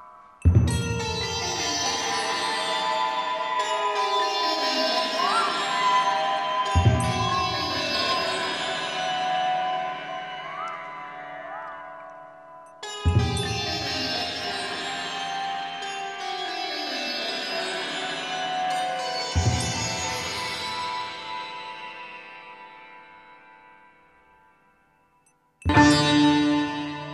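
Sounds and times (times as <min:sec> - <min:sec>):
Indian sitar: 0:00.0 - 0:25.1, 0:25.7 - 0:27.1
Tibetan bells: 0:00.0 - 0:27.1.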